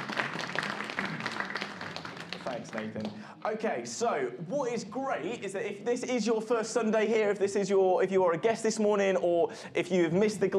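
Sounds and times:
audience applause: 0.0 - 3.2
speech: 2.5 - 10.5.

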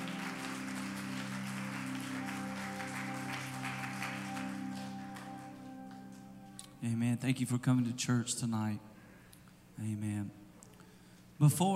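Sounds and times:
audience clapping: 0.0 - 6.4
speech: 6.8 - 8.9, 9.8 - 10.4, 11.4 - 11.7.

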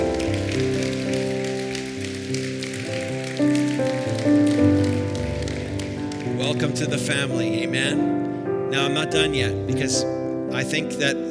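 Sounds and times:
audience applause: 0.0 - 6.4
speech: 6.6 - 11.2.

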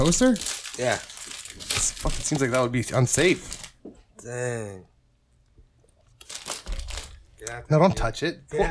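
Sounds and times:
speech: 0.0 - 1.1, 1.8 - 3.6, 4.2 - 4.9, 7.4 - 8.6
plastic snack bag torn open and crinkling: 0.0 - 3.8, 6.2 - 7.2.

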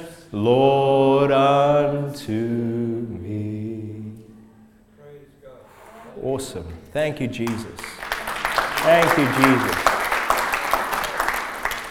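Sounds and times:
speech: 0.0 - 3.4, 6.2 - 7.9, 8.8 - 9.8
audience clapping: 7.4 - 11.8.

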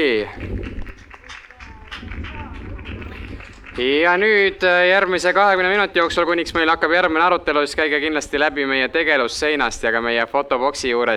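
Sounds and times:
speech: 0.0 - 0.6, 3.8 - 11.1
audience applause: 0.0 - 8.8.

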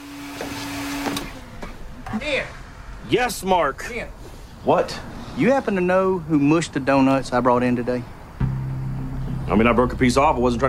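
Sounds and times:
vacuum cleaner cleaning out a rental minivan: 0.0 - 1.4
speech: 2.2 - 8.2, 9.5 - 10.6.

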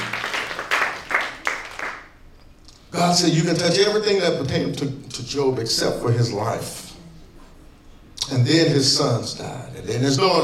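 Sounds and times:
crowd clapping: 0.0 - 2.2
speech: 3.0 - 6.8, 8.3 - 10.4.

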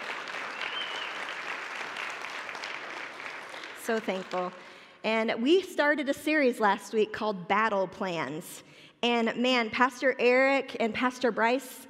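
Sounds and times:
audience round of applause: 0.0 - 4.5
speech: 3.9 - 11.8.

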